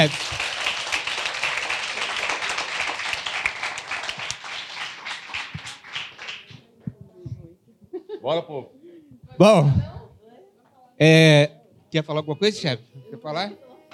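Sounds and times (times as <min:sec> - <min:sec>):
speech: 0:00.0 - 0:00.4, 0:08.2 - 0:08.8, 0:09.4 - 0:10.0, 0:11.0 - 0:13.9
audience applause: 0:00.0 - 0:06.7.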